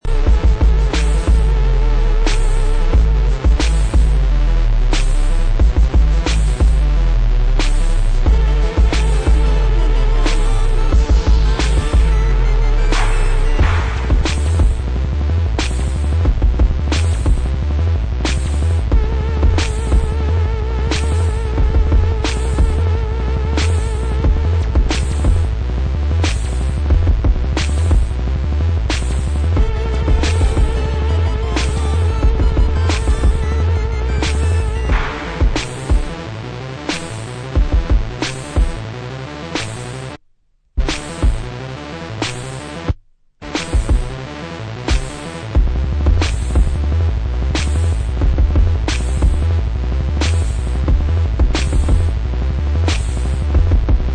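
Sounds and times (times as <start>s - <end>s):
instrumental remix: 0.0s - 40.2s, 40.8s - 54.1s.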